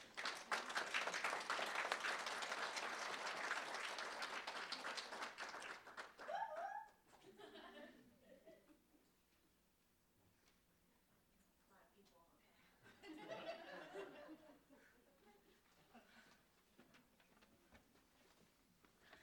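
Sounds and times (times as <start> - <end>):
audience applause welcoming a speaker at an evening program: 0.0 - 6.7
laughter: 6.3 - 8.8, 12.9 - 16.4.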